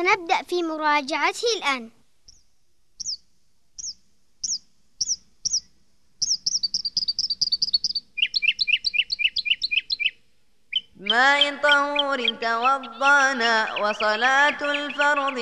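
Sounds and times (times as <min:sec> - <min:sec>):
speech: 0:00.0 - 0:02.0, 0:11.0 - 0:15.4
small bird chirping while building a nest: 0:01.6 - 0:15.4.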